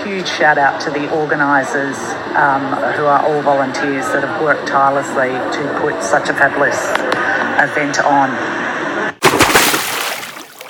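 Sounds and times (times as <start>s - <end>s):
speech: 0.0s - 8.6s
steady crowd noise: 0.0s - 10.6s
starter's gun firing at a race start: 9.2s - 10.0s.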